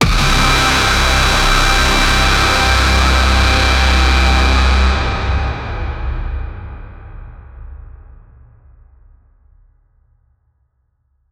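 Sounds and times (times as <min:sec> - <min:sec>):
deathcore band playing at a big concert: 0:00.0 - 0:07.0.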